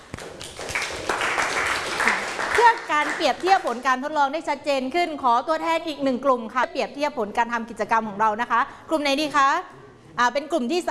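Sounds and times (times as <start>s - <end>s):
applause for a student group: 0.0s - 3.9s
speech: 2.7s - 10.8s.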